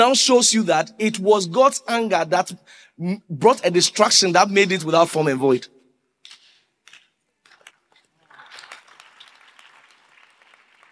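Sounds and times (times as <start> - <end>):
speech: 0.0 - 5.8
people clapping: 6.9 - 10.8.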